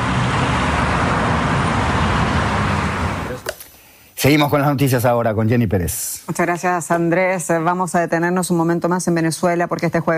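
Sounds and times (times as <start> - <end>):
busy city street traffic in Buenos Aires: 0.0 - 3.5
speech: 4.2 - 10.1.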